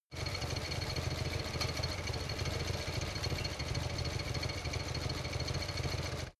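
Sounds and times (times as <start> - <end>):
Harley motorcycle engine idle rattle: 0.1 - 6.3.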